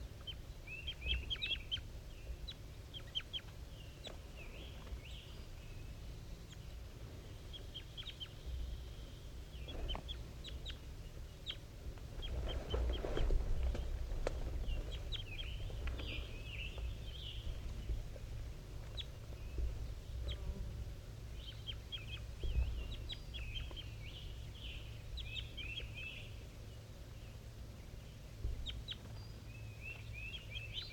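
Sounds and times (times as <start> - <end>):
steady low hum: 0.0 - 30.9
wild birds calling back and forth: 0.0 - 30.9
rustling: 11.9 - 16.9.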